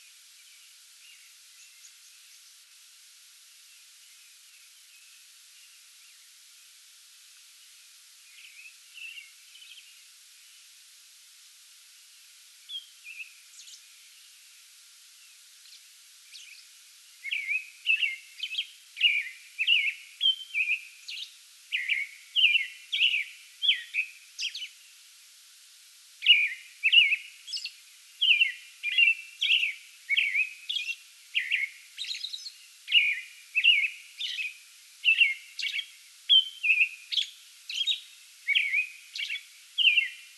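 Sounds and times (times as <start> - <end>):
American robin singing: 8.3 - 10.0, 15.6 - 24.8, 26.2 - 40.3.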